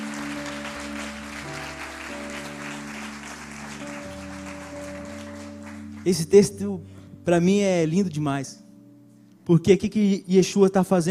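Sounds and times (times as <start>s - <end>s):
audience applause: 0.0s - 6.2s
speech: 6.0s - 8.6s, 9.5s - 11.0s.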